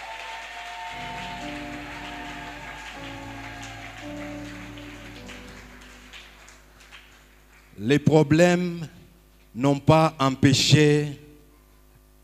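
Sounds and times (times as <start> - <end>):
audience applauding: 0.0 - 7.8
speech: 7.8 - 9.0, 9.6 - 11.2.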